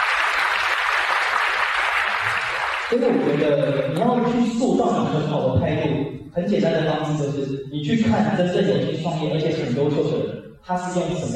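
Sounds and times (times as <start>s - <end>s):
audience applause during a motivational talk on entrepreneurship: 0.0s - 3.8s
speech: 2.9s - 11.3s.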